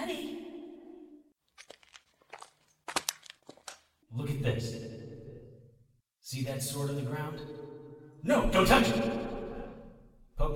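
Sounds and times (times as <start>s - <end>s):
foil Pop-Tart wrappers crinkling: 1.6s - 3.8s
speech: 4.2s - 4.9s, 6.3s - 7.6s, 8.2s - 9.2s.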